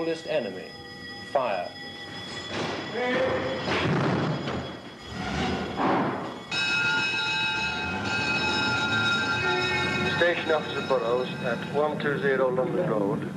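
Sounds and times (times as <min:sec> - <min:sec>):
speech: 0:00.0 - 0:01.9, 0:02.5 - 0:04.1, 0:10.2 - 0:13.3
fire engine bells ringing: 0:00.0 - 0:13.1
fire engines rumbling off: 0:02.2 - 0:13.3.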